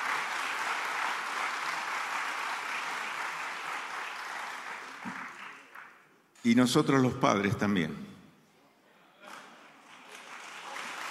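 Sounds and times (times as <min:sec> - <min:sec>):
audience applause: 0:00.0 - 0:06.0, 0:09.3 - 0:11.0
speech: 0:06.4 - 0:08.1.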